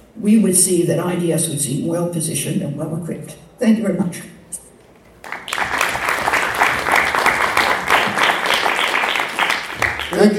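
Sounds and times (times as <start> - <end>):
speech: 0.2 - 4.4, 10.2 - 10.3
audience applause: 5.2 - 10.3.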